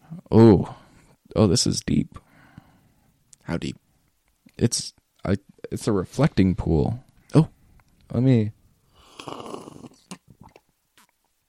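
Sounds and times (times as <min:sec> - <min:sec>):
speech: 0:01.4 - 0:02.2, 0:03.5 - 0:03.8, 0:04.6 - 0:08.6
person slurping a drink into the mic: 0:09.0 - 0:11.1
short sucking sips: 0:09.0 - 0:11.1
small mouth smacking sounds: 0:09.0 - 0:11.2.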